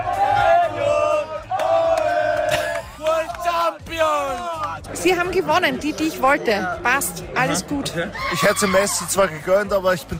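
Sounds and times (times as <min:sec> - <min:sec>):
crowd cheering and chanting at football World Cup final public viewing: 0:00.0 - 0:09.8
speech: 0:05.0 - 0:10.1.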